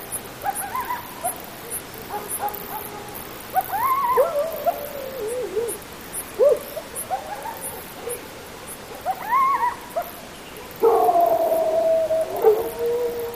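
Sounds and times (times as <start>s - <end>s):
coyote group yipping, barking and yelping: 0.4s - 10.2s, 10.8s - 13.3s.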